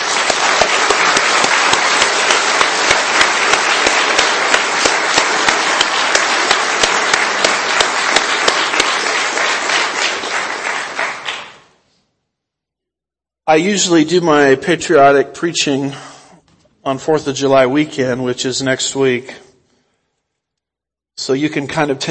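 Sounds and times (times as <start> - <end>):
audience applause: 0.0 - 11.8
speech: 13.5 - 16.1, 16.8 - 19.5, 21.3 - 22.1.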